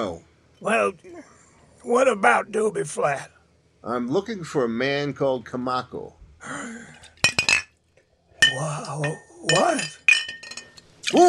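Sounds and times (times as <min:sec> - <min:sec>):
speech: 0:00.0 - 0:07.0, 0:08.5 - 0:10.0, 0:11.1 - 0:11.2
glass bottle clinking: 0:07.1 - 0:07.8, 0:08.4 - 0:10.9.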